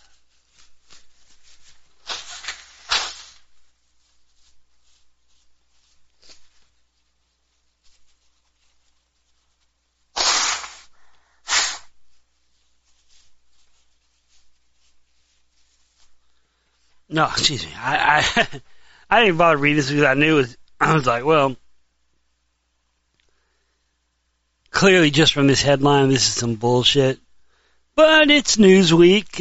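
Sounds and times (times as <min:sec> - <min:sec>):
person blowing nose: 0:01.9 - 0:03.6, 0:10.1 - 0:12.0
speech: 0:17.1 - 0:21.6, 0:24.8 - 0:27.2, 0:28.0 - 0:29.4.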